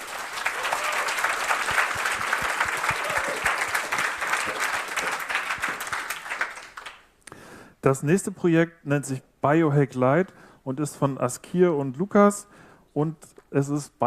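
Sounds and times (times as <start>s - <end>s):
audience applause: 0.0s - 7.0s
speech: 7.8s - 14.0s.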